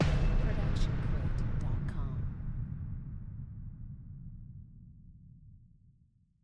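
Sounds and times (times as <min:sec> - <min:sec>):
epic impact hit: 0:00.0 - 0:04.3.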